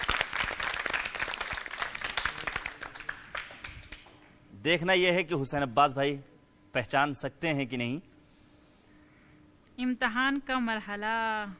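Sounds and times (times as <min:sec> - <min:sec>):
audience applause: 0:00.0 - 0:04.0
speech: 0:04.6 - 0:08.1, 0:09.8 - 0:11.5.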